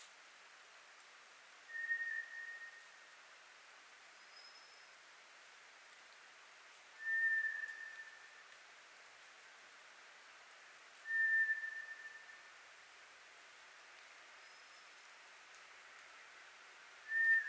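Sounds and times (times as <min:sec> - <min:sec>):
soft hiss: 0:00.0 - 0:17.4
White's thrush whistling song: 0:01.7 - 0:03.0, 0:07.0 - 0:08.4, 0:11.0 - 0:12.5, 0:17.1 - 0:17.4.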